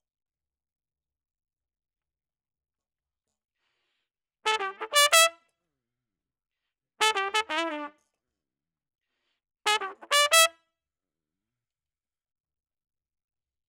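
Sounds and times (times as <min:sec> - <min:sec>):
trumpet: 0:04.5 - 0:05.5, 0:07.0 - 0:08.1, 0:09.7 - 0:10.6.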